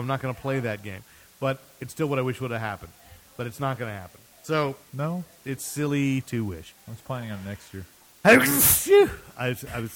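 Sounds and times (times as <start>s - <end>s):
speech: 0.0s - 9.9s
voiced syllables: 2.8s - 9.3s
person sneezing: 8.3s - 9.2s.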